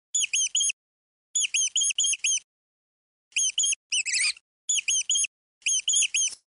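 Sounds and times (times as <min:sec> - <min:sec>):
rodent squeaking: 0:00.2 - 0:00.8, 0:01.4 - 0:02.5, 0:03.3 - 0:06.4.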